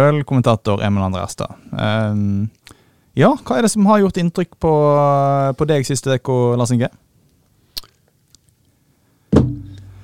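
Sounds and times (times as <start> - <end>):
speech: 0.0 - 7.1
mobile phone slammed onto table: 9.3 - 9.9.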